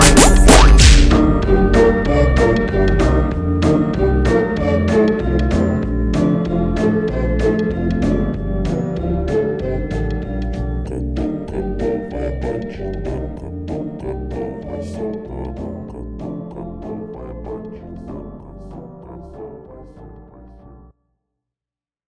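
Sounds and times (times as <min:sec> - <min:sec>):
slowed funk music: 0:00.0 - 0:14.3.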